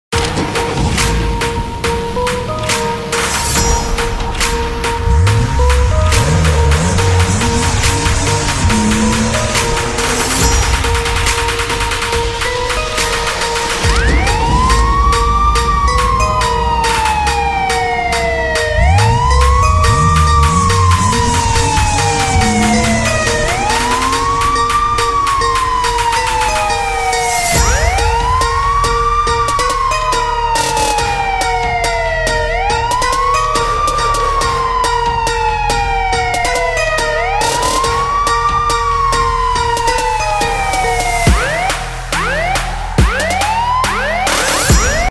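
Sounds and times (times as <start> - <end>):
trap bass: 0.1 - 45.0.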